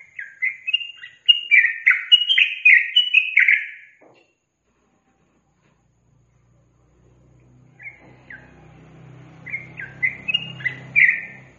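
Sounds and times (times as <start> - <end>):
yellow-vented bulbul singing: 0.0 - 4.0, 7.8 - 11.5.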